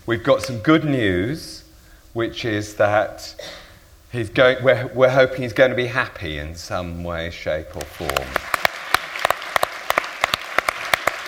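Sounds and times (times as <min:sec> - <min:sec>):
speech: 0:00.1 - 0:08.5
audience clapping: 0:07.8 - 0:11.2.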